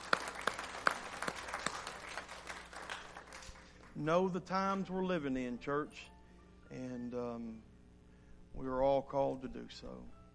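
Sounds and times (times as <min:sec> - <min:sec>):
audience applause: 0:00.0 - 0:03.9
speech: 0:04.0 - 0:06.1, 0:06.7 - 0:07.7, 0:08.6 - 0:10.2.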